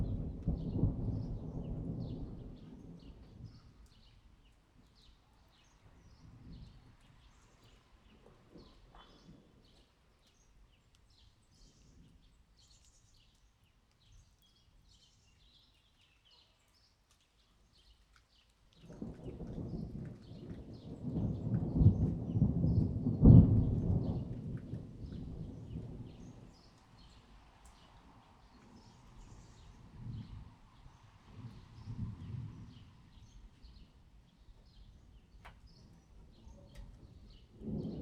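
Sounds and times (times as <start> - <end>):
thunder: 0.0 - 3.6, 18.9 - 26.6, 31.3 - 33.3, 36.8 - 38.0.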